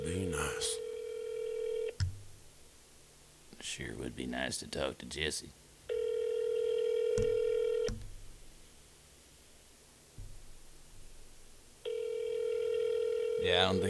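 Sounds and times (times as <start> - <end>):
phone call ringback tone: 0.0 - 2.0, 5.9 - 7.9, 11.8 - 13.8
faint hiss: 2.0 - 5.9, 7.9 - 11.9
speech: 3.8 - 5.6, 13.6 - 13.8.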